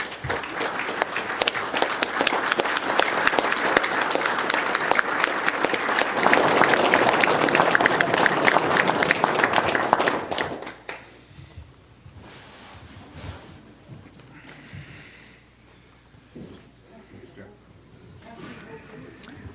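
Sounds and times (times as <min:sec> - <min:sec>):
audience applause: 0:00.0 - 0:11.1.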